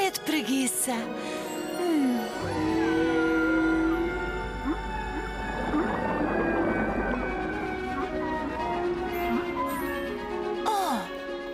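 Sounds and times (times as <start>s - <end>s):
speech: 0.1s - 2.8s
whale calls: 2.4s - 10.7s
deep steady rumble: 2.6s - 11.5s.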